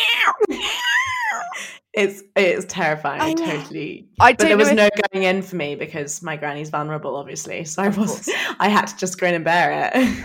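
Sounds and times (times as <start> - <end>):
voice imitating a screaming fox: 0.0 - 1.6
speech: 2.0 - 10.2.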